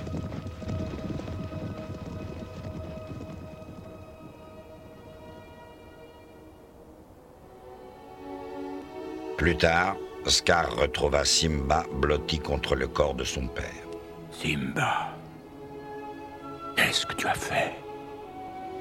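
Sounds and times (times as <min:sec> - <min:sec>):
stampeding herd's thundering hooves: 0:00.0 - 0:06.1
speech: 0:09.4 - 0:13.8, 0:14.4 - 0:15.1, 0:16.9 - 0:17.8.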